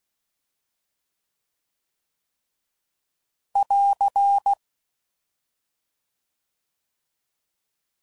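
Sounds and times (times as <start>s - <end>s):
morse code beeps: 3.6s - 4.6s.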